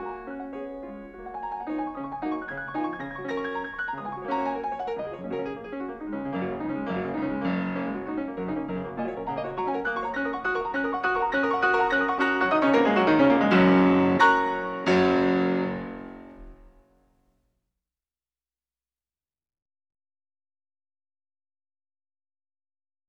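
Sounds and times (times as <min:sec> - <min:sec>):
piano etude in G-flat major: 0:00.0 - 0:16.8.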